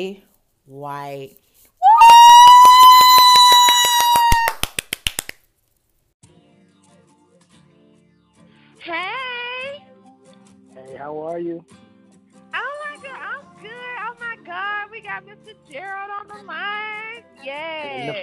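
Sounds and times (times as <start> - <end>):
speech: 0.0 - 1.4, 8.8 - 9.2, 11.0 - 11.8, 14.5 - 18.2
hosts clapping to welcome guest: 1.9 - 5.4.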